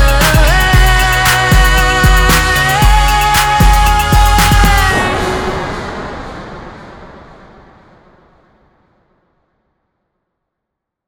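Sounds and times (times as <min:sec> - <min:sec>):
electro remix music: 0:00.0 - 0:06.2.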